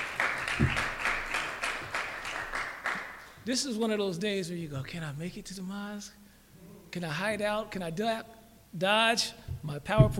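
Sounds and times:
audience applause: 0.0s - 3.3s
speech: 3.4s - 6.2s, 6.9s - 10.1s.

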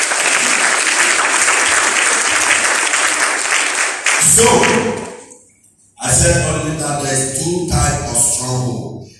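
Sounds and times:
audience clapping: 0.0s - 5.3s
speech: 4.4s - 5.1s, 6.7s - 8.9s.

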